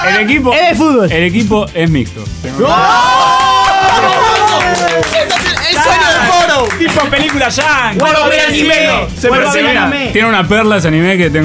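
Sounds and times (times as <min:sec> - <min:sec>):
speech: 0:00.0 - 0:03.4, 0:04.0 - 0:11.4
crowd cheering and shouting: 0:02.5 - 0:10.1
applause: 0:03.3 - 0:08.3.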